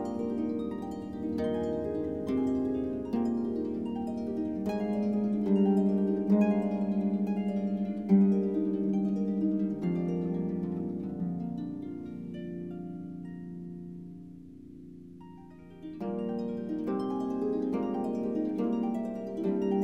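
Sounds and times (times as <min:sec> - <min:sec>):
instrumental praise music on harp: 0:00.0 - 0:19.8.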